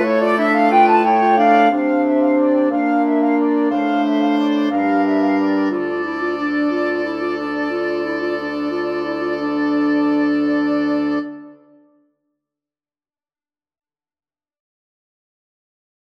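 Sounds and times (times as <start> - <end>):
wind quartet playing a carol: 0.0 - 11.8.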